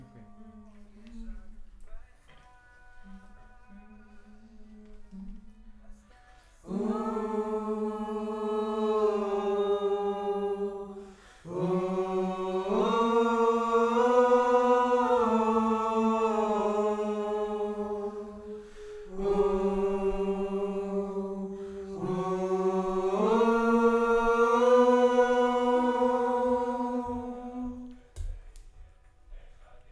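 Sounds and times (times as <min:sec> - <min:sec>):
distant choir: 0:02.7 - 0:28.4.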